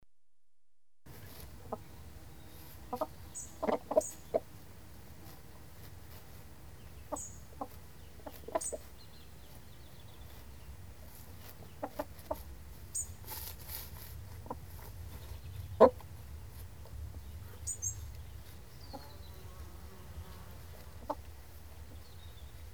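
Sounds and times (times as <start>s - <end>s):
chickens scratching: 1.1s - 22.7s.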